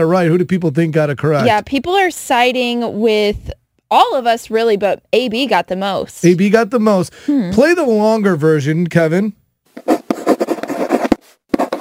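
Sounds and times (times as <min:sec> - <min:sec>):
speech: 0:00.0 - 0:10.0
pen scratching on paper writing a love letter: 0:09.8 - 0:11.7.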